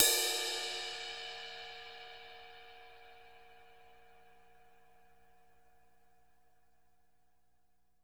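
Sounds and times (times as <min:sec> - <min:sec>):
crash cymbal tip hit: 0:00.0 - 0:02.7.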